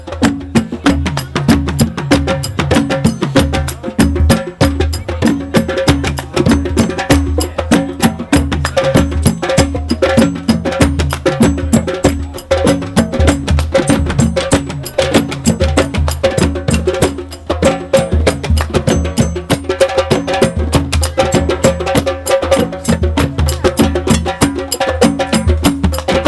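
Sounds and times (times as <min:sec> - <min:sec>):
drums: 0:00.0 - 0:26.2.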